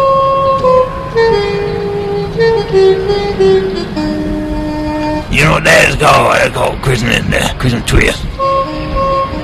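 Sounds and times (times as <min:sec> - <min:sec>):
saxophone blown through a nostril: 0:00.0 - 0:05.3, 0:08.3 - 0:09.4
speech: 0:05.6 - 0:08.6.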